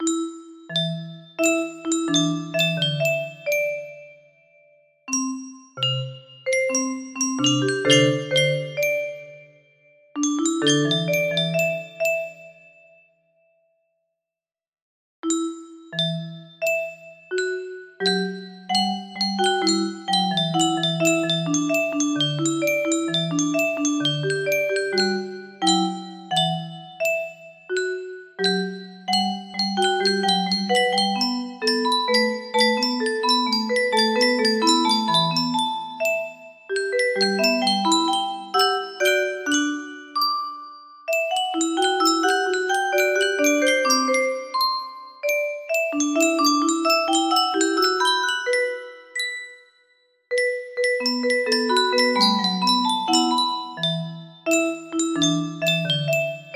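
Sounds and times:
music box melody: 0:00.0 - 0:13.0, 0:15.2 - 0:56.5.

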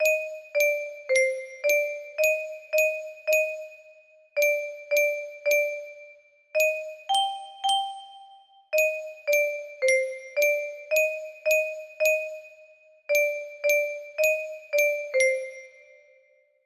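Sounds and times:
music box: 0:00.0 - 0:16.3.

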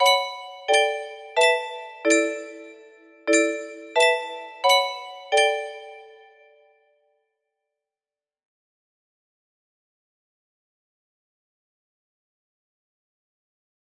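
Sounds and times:
melody: 0:00.0 - 0:06.6.

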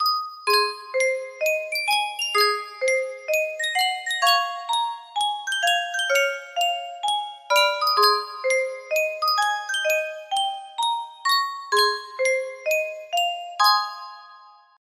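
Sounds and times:
Yunsheng custom tune music box: 0:00.0 - 0:14.8.

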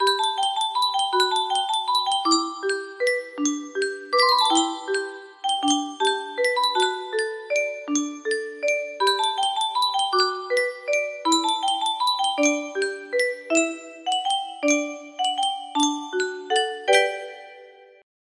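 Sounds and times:
music box melody: 0:00.0 - 0:18.0.

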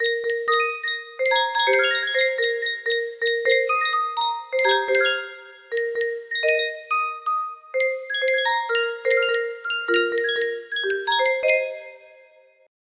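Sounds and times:
melody: 0:00.0 - 0:12.2.

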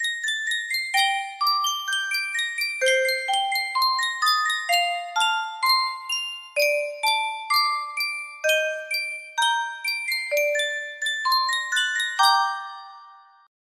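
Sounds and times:
Yunsheng custom tune music box melody: 0:00.0 - 0:13.5.

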